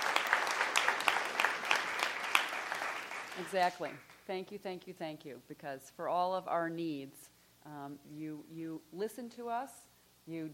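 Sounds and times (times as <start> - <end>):
audience applause: 0.0 - 4.1
speech: 3.4 - 10.5.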